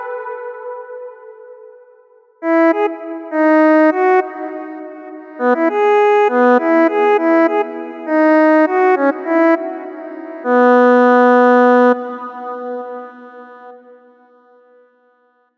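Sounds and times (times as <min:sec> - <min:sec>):
gospel melodies: 0:02.4 - 0:14.2.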